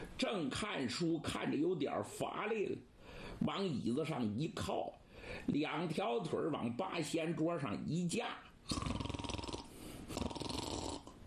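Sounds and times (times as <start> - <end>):
speech: 0.2 - 9.0
storyteller imitating loud snoring with his voice: 8.6 - 11.2.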